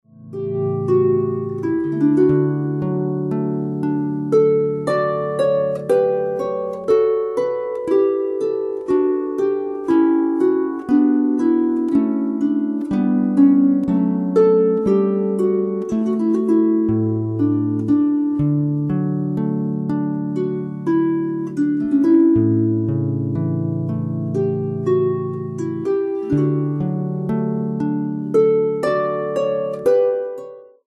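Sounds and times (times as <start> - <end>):
prelude: 0.1 - 30.8.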